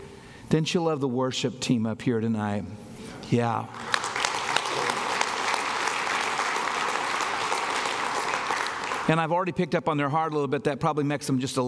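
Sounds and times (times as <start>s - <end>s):
speech: 0.5s - 4.0s, 9.1s - 11.6s
audience clapping for worship team: 3.7s - 9.3s.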